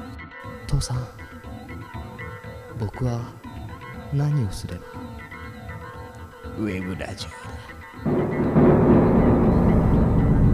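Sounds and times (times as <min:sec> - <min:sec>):
speech: 0:00.7 - 0:01.2, 0:02.8 - 0:03.4, 0:04.1 - 0:05.1, 0:06.6 - 0:08.2
thunder rumbling: 0:08.1 - 0:10.5.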